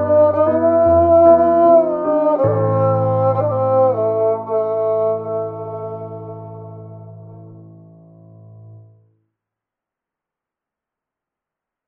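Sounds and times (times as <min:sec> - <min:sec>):
dark beautiful erhu playing: 0:00.0 - 0:07.5.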